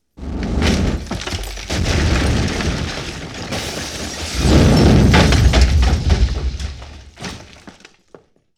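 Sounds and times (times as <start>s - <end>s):
explosion: 0.2s - 7.5s.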